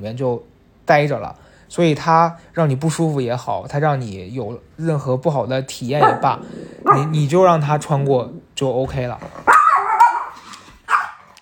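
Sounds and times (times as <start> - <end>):
speech: 0.0 - 9.5
dog barking: 6.0 - 7.3, 9.5 - 11.4.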